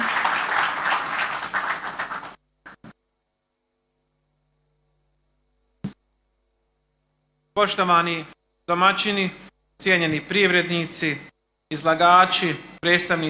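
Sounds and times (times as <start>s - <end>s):
audience applause welcoming a cantonal premier at a business fair: 0.0s - 2.8s
speech: 7.6s - 13.2s.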